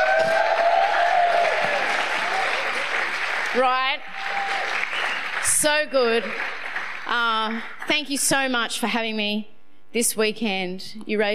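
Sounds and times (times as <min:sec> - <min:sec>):
audience cheering and clapping: 0:00.0 - 0:07.1
speech: 0:03.6 - 0:04.0, 0:05.6 - 0:06.5, 0:07.1 - 0:11.3.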